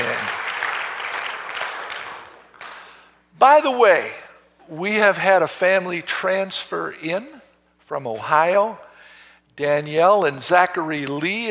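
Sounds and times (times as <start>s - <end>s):
audience applause: 0.0s - 3.0s
speech: 3.4s - 8.8s, 9.6s - 11.4s.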